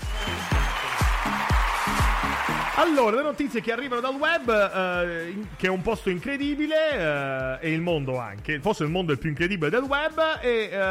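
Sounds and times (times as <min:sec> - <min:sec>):
crowd applause: 0:00.0 - 0:06.6
speech: 0:02.8 - 0:10.8.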